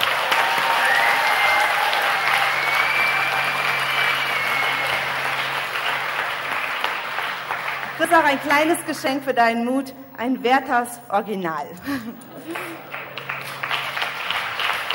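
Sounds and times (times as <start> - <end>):
audience applause: 0.0 - 9.1, 12.3 - 14.9
speech: 8.1 - 12.9.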